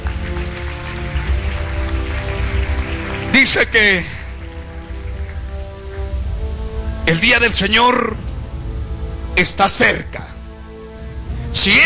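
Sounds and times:
audience clapping hands: 0.0s - 7.3s
speech: 3.4s - 4.2s, 7.1s - 8.2s, 9.4s - 10.3s, 11.6s - 11.8s.

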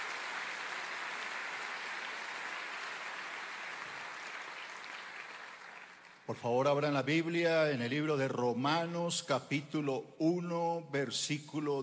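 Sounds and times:
audience applause of welcome: 0.0s - 6.2s
speech: 6.3s - 11.8s.

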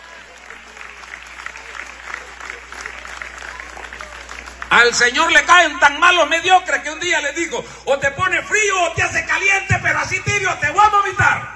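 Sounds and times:
faint murmur of voices: 0.0s - 6.0s
audience applause: 0.0s - 6.2s
speech: 4.8s - 11.5s.

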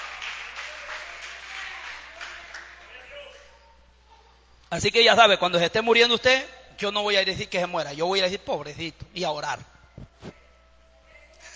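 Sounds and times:
audience applause: 0.0s - 3.4s
speech: 4.7s - 10.4s.

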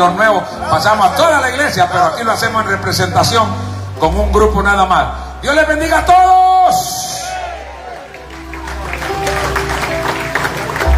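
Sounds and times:
speech: 0.0s - 6.9s
congregation applause: 7.3s - 10.9s.

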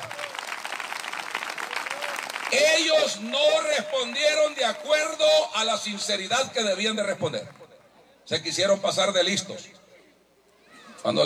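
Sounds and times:
church congregation applauding the Lord: 0.0s - 5.5s
speech: 2.5s - 7.6s, 8.3s - 9.8s, 11.0s - 11.2s.

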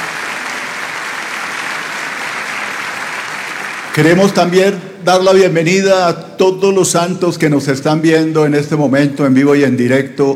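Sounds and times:
audience applause: 0.0s - 4.4s
speech: 4.0s - 10.3s.

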